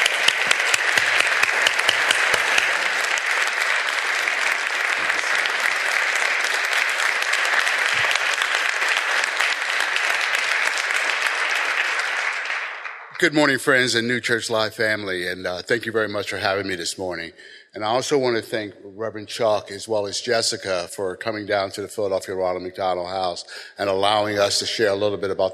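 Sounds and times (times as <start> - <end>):
audience applause: 0.0 - 13.3
speech: 13.2 - 25.5.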